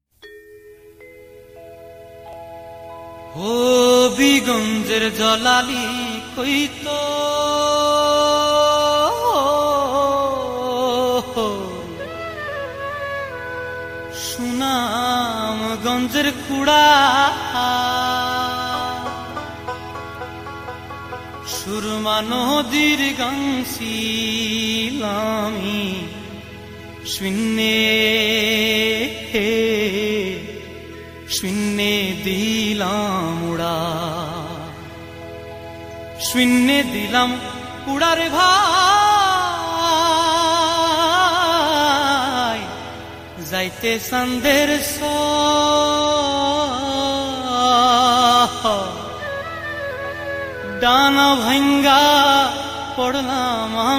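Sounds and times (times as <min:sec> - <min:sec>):
Bengali folk song: 0:00.9 - 0:53.9.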